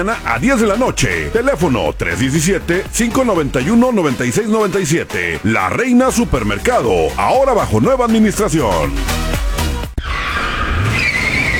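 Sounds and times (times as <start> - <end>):
speech: 0.0 - 9.5
car tires skidding in a crash: 9.9 - 11.5.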